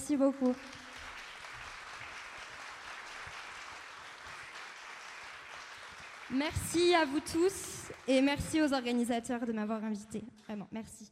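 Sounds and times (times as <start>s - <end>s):
speech: 0.1s - 0.9s, 6.3s - 11.1s
audience applause: 0.7s - 7.2s.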